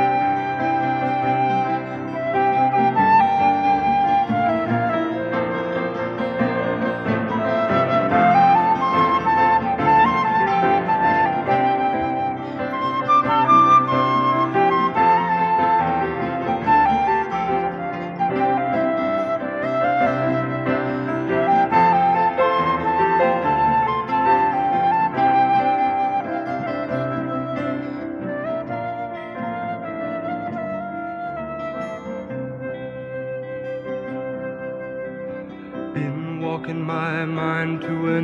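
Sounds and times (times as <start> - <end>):
flute: 0.0 - 38.2
vocals: 35.9 - 38.2.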